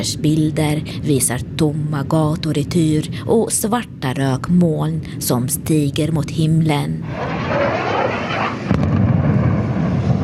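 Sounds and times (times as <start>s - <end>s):
speech: 0.0s - 7.6s
explosions in a city: 7.0s - 10.2s.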